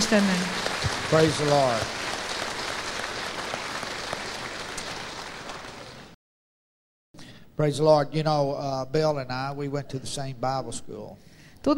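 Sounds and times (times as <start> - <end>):
congregation at a church service applauding guests: 0.0 - 6.2
speech: 0.1 - 2.0, 7.6 - 11.7.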